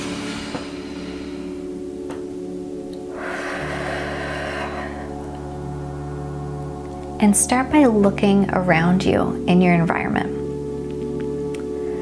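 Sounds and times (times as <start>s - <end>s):
deep breath into the belly: 0.0s - 2.0s, 3.0s - 6.1s
low hum: 0.0s - 12.0s
speech: 7.2s - 10.4s.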